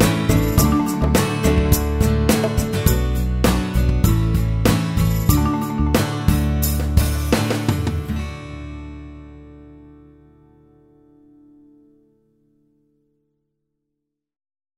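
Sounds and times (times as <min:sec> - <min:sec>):
instrumental refrain with verses: 0:00.0 - 0:08.3.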